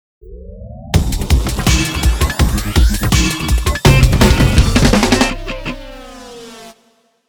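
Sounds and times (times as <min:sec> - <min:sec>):
intro instrumental music: 0:01.0 - 0:06.3.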